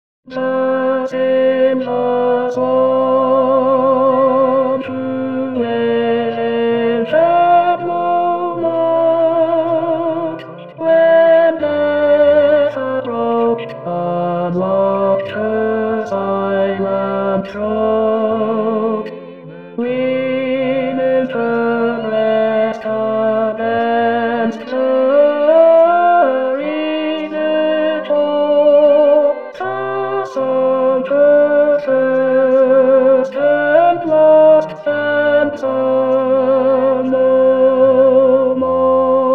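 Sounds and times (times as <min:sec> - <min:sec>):
tenor singing: 0:00.3 - 0:39.3.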